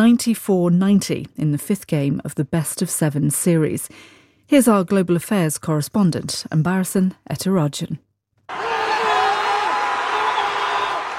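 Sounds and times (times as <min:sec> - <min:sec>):
speech: 0:00.0 - 0:08.6
fans chanting: 0:08.5 - 0:11.1.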